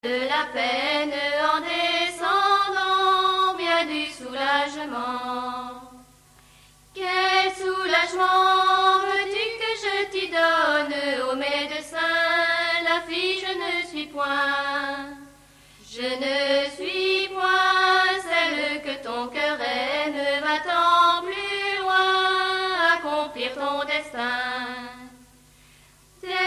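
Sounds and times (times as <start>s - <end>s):
folk songs of the west: 0.0s - 26.4s.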